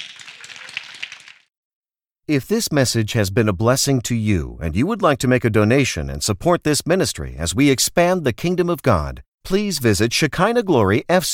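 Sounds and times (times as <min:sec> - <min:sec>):
audience hand clapping: 0:00.0 - 0:01.5
speech: 0:02.3 - 0:11.3.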